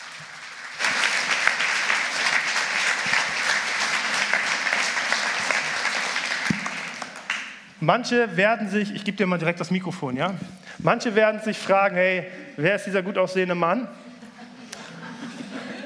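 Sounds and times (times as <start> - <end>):
audience applause: 0.0 - 7.6
speech: 7.8 - 14.0
laughter: 14.0 - 15.8.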